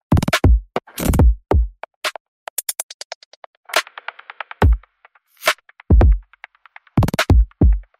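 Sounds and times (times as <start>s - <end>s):
drum: 0.1s - 1.8s, 3.7s - 6.4s, 7.0s - 7.9s.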